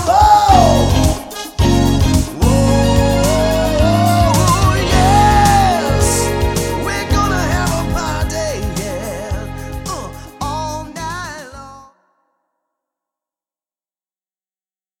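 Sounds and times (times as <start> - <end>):
cover band playing: 0.2 - 11.5.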